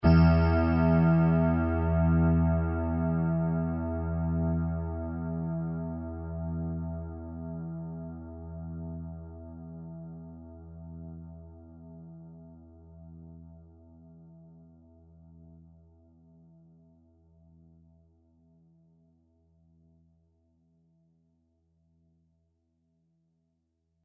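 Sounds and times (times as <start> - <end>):
sustained tone: 0.0 - 7.4.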